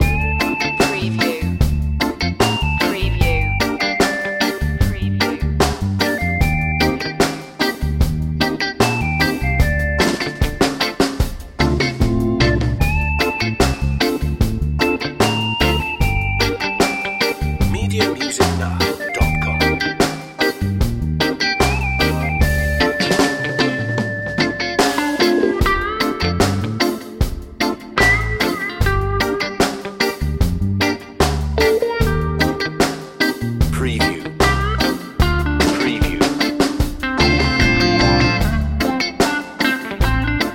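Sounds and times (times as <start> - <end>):
summertime reggae loop: 0.0 - 40.5.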